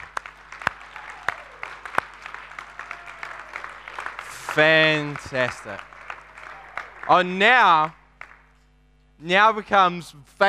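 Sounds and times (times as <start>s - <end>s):
audience round of applause: 0.0s - 8.4s
sharp louder claps: 0.0s - 8.6s
speech: 4.5s - 5.9s, 7.1s - 8.0s, 9.2s - 10.4s.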